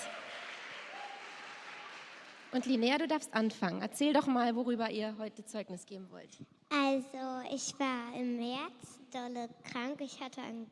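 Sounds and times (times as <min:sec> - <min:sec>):
crowd applause: 0:00.0 - 0:03.0
speech: 0:02.5 - 0:10.6.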